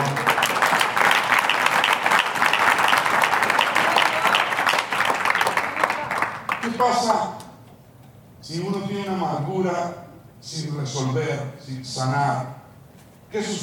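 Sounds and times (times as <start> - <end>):
audience applauding: 0.0 - 7.2
speech: 9.4 - 12.5, 13.3 - 13.6.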